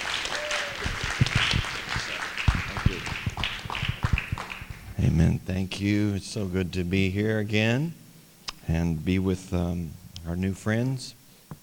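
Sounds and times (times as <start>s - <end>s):
audience applause welcoming a guest speaker at a Tree of Life gathering: 0.0s - 5.0s
speech: 5.1s - 8.0s, 8.7s - 11.2s.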